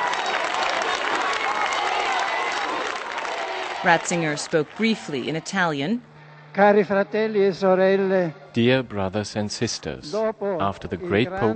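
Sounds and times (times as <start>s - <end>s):
large crowd applauding: 0.0s - 5.6s
speech: 3.8s - 11.5s.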